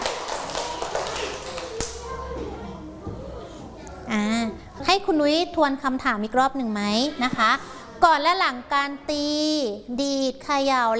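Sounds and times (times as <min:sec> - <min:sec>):
classroom clapping for a student: 0:00.0 - 0:02.3
speech: 0:05.1 - 0:10.9.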